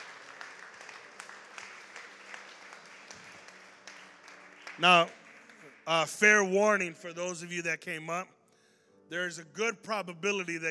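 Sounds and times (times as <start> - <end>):
audience hand clap of praise: 0.0 - 7.2
speech: 4.8 - 5.2, 5.9 - 8.4, 9.1 - 10.7.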